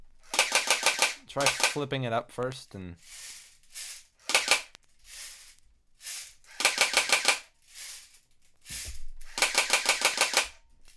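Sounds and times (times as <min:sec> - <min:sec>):
airsoft gun firing and jamming: 0:00.2 - 0:01.9, 0:03.1 - 0:05.3, 0:06.1 - 0:07.6, 0:08.7 - 0:10.6
speech: 0:01.3 - 0:03.9.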